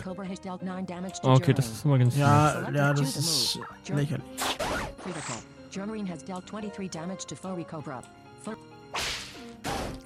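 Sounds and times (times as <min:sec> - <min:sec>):
speech: 0:00.1 - 0:08.6
video game whipping attack sound effect: 0:04.4 - 0:05.3, 0:08.9 - 0:10.0.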